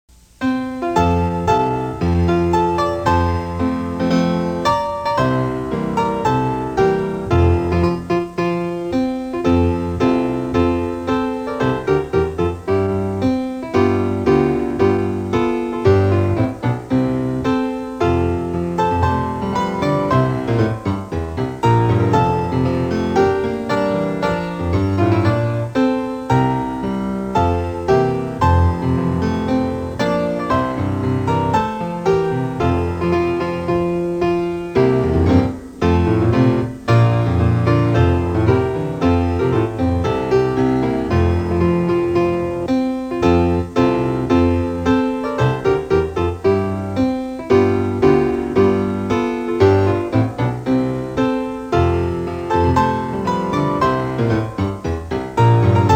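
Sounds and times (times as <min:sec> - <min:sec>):
piano: 0:00.1 - 0:55.9.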